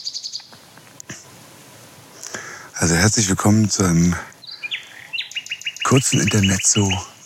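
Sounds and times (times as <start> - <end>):
nightingale singing: 0.0 - 0.6, 2.2 - 7.2
speech: 2.8 - 4.4, 5.9 - 7.1.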